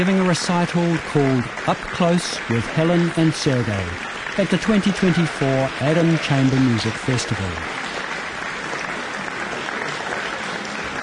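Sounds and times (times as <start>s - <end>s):
speech: 0.0s - 7.8s
concert audience applause: 0.0s - 11.0s.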